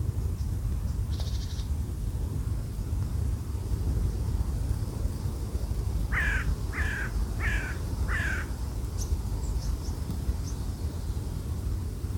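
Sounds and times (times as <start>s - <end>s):
deep blustery wind: 0.0s - 12.1s
bird cawing: 6.1s - 8.5s.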